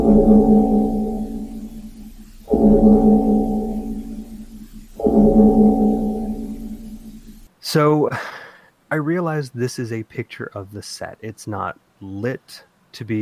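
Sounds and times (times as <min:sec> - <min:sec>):
cloister bell ringing: 0:00.0 - 0:07.1
speech: 0:00.2 - 0:01.0, 0:07.7 - 0:13.1.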